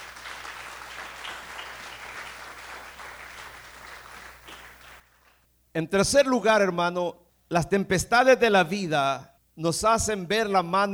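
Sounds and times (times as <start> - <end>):
audience applause: 0.0 - 5.4
speech: 5.8 - 10.9.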